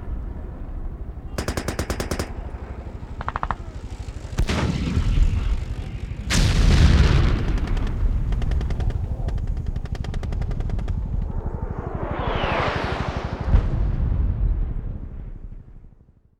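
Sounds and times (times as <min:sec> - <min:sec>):
modern military battle: 0:00.0 - 0:16.0.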